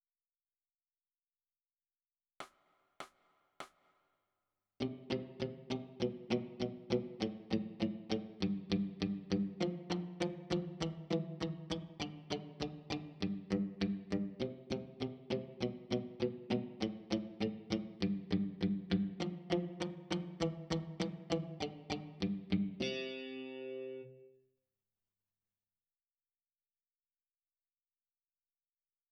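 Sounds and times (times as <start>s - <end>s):
electric guitar: 4.8s - 24.4s.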